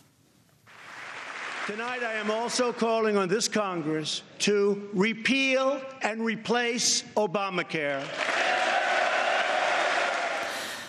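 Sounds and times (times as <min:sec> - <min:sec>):
applause from congressional audience: 0:00.7 - 0:02.5, 0:08.0 - 0:10.8
speech: 0:01.7 - 0:08.3.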